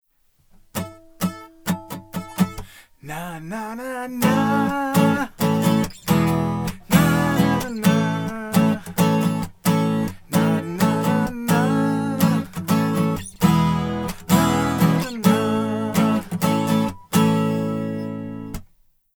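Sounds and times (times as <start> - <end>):
12-string guitar: 0.5 - 18.7
vocals in an insulated vocal booth: 2.4 - 17.0.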